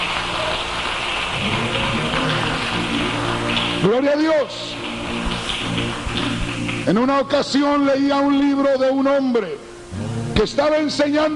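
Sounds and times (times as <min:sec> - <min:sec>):
audience applauding: 0:00.0 - 0:08.6
speech: 0:03.8 - 0:04.8, 0:06.8 - 0:11.3.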